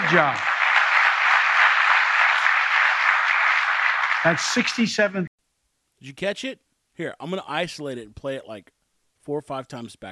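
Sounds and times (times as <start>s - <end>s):
audience applause: 0.0s - 5.0s
speech: 0.1s - 0.5s, 4.2s - 5.3s, 6.0s - 10.1s.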